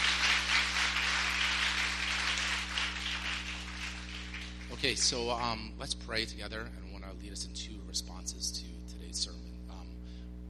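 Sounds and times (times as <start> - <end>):
audience clapping: 0.0 - 5.5
speech: 4.8 - 9.4.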